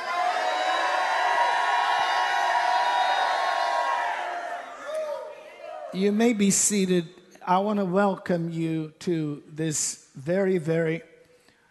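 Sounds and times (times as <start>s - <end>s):
congregation shouting praise during a church service: 0.0s - 6.0s
speech: 5.9s - 11.1s.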